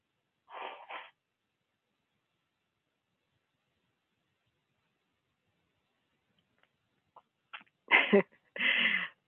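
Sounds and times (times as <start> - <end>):
person blowing nose: 0.5 - 1.1.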